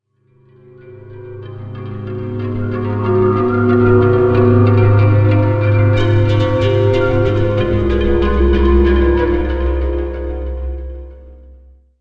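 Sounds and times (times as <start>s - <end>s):
music loop: 2.2s - 10.9s.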